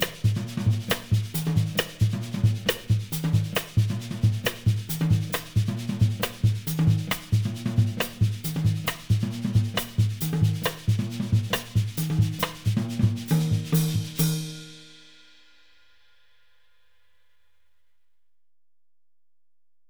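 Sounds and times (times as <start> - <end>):
drumset played with stick brushes in a West African rhythm: 0.0 - 15.6.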